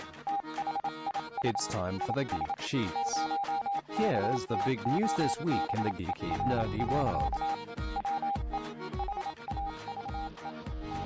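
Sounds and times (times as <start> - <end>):
Morse code beeping over the wire: 0.3 - 8.4, 9.0 - 11.0
speech: 1.4 - 7.6.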